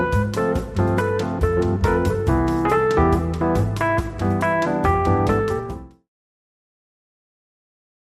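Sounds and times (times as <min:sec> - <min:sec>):
Arabian rumba music: 0:00.0 - 0:06.0.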